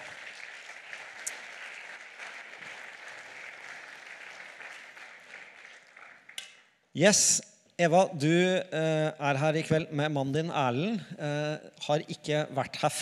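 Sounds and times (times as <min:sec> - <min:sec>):
audience applause: 0:00.0 - 0:06.4
speech: 0:07.0 - 0:12.9.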